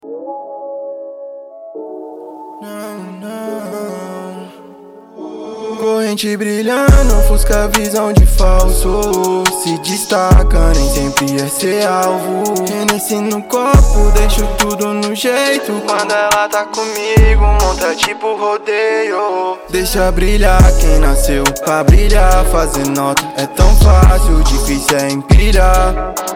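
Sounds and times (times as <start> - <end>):
trap rap music: 5.6 - 26.3.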